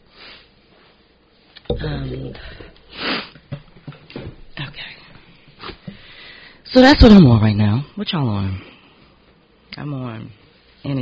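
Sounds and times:
speech: 1.7s - 3.2s, 6.7s - 8.7s, 9.8s - 11.0s
person sniffing from a runny nose: 2.9s - 3.3s.

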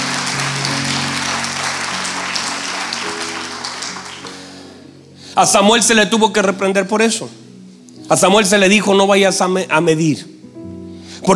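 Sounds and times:
crowd clapping: 0.0s - 4.8s
low musical drone: 0.0s - 5.4s
speech: 5.4s - 7.4s, 8.1s - 10.4s.

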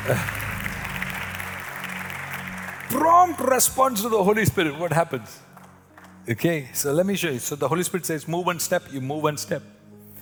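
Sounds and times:
audience clapping hands: 0.0s - 4.7s, 5.5s - 6.4s
speech: 0.1s - 0.4s, 2.9s - 5.5s, 6.3s - 9.8s.

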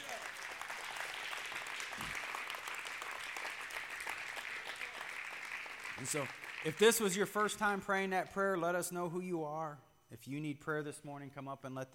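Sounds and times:
audience hand clapping: 0.0s - 7.6s
speech: 6.0s - 11.9s.

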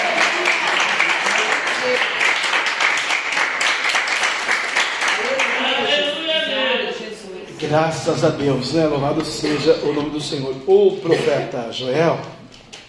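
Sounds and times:
audience applause: 0.0s - 6.3s
speech: 7.7s - 12.4s.

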